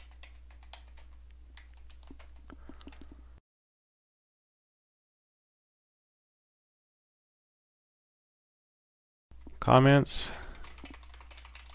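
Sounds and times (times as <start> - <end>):
typing a password on a computer keyboard: 0.0 - 3.2, 10.5 - 11.7
speech: 9.6 - 10.4.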